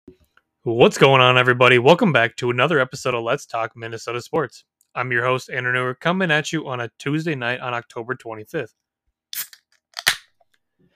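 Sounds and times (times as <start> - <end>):
speech: 0.6 - 8.8
bottle or can of ale being opened: 9.3 - 10.4.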